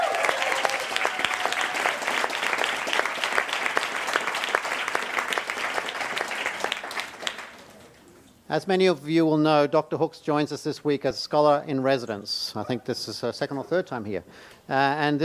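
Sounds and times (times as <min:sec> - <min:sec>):
audience applause: 0:00.0 - 0:08.0
speech: 0:08.5 - 0:15.2.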